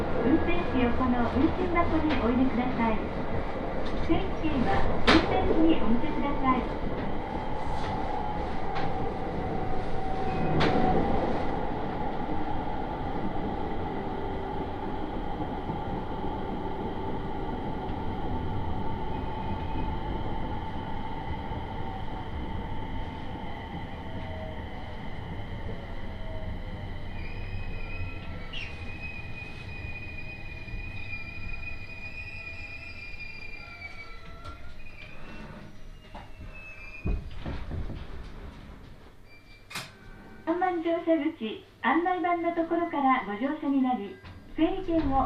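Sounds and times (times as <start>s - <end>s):
local train running on railway tracks: 0.0s - 39.2s
speech: 0.3s - 7.0s, 41.0s - 45.2s
thin high-pitched squeals: 26.1s - 37.2s.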